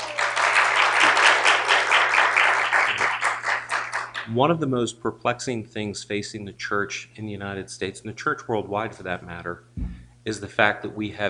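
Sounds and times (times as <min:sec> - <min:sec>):
live studio audience applauding: 0:00.0 - 0:04.4
low constant hum: 0:00.3 - 0:11.2
speech: 0:04.3 - 0:11.2.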